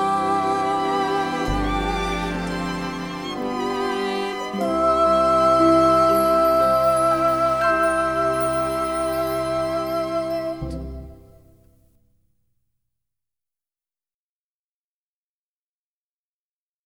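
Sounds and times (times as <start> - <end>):
vocals: 0.0 - 11.7.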